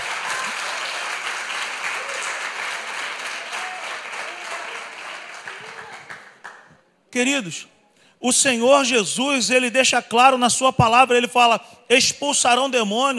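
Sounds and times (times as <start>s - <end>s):
audience applause: 0.0s - 6.7s
speech: 7.1s - 13.1s.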